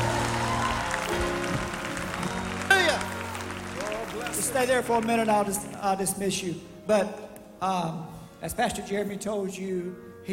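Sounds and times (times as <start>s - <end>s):
audience shouting praise: 0.0s - 4.4s
speech: 4.6s - 10.3s.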